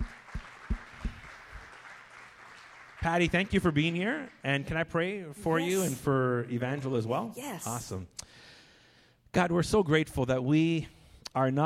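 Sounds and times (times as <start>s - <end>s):
church congregation clapping to welcome a guest speaker: 0.0s - 5.0s
speech: 3.0s - 8.2s, 9.3s - 11.6s.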